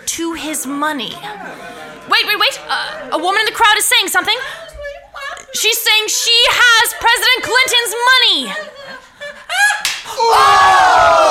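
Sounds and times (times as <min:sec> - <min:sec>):
crowd noise: 0:00.0 - 0:11.3
laughter: 0:00.3 - 0:10.3
speech: 0:00.5 - 0:04.7, 0:05.6 - 0:08.8, 0:10.2 - 0:11.3
backhand slap to the face: 0:09.8 - 0:10.1.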